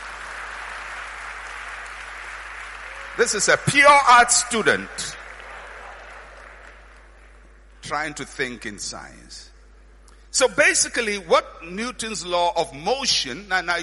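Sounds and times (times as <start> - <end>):
audience clapping: 0.0 - 7.8
speech: 3.2 - 5.2, 7.9 - 9.5, 10.3 - 13.8.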